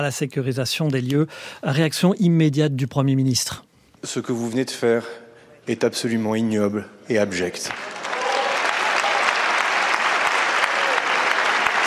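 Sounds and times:
speech: 0.0s - 8.0s
large parliament assembly applauding in a big chamber: 7.6s - 11.8s.

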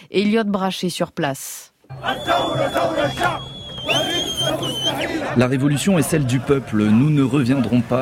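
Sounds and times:
speech: 0.1s - 7.9s
crowd of protesters shouting and chanting in a street: 1.9s - 6.6s.

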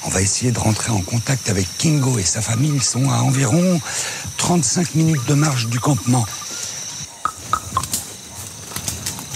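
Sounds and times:
speech: 0.0s - 6.5s
male gorilla beating his chest in the wild: 7.2s - 8.1s.

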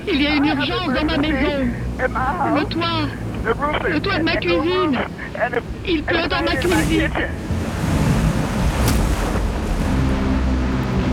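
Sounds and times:
speech: 0.0s - 7.6s
storm wind: 0.0s - 11.1s
storm surge waves at New Orleans levees: 5.5s - 11.1s.

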